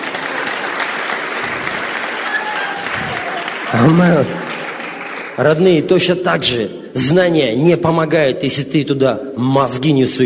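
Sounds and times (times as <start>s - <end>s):
church congregation applause during a sermon: 0.0s - 5.8s
speech: 3.7s - 4.5s, 5.4s - 10.2s.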